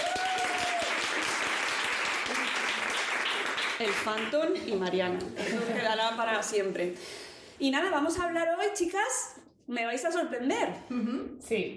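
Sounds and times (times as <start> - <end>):
applause: 0.0 - 4.4
speech: 3.8 - 11.7.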